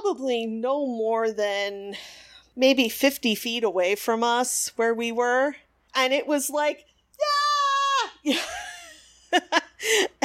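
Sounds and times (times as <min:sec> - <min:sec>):
speech: 0:00.1 - 0:07.3, 0:08.2 - 0:08.6, 0:09.3 - 0:10.2
person imitating a fangirl's scream at a concert: 0:07.2 - 0:08.3.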